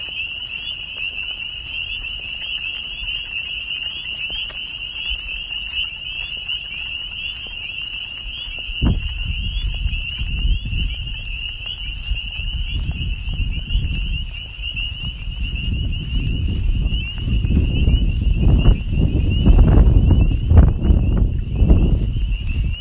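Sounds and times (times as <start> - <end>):
frogs singing: 0.0 - 22.7.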